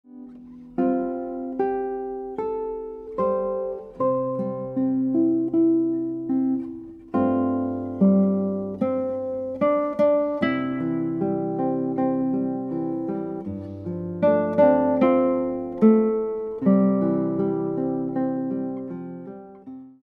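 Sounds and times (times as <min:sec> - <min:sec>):
guitar: 0:00.0 - 0:20.0.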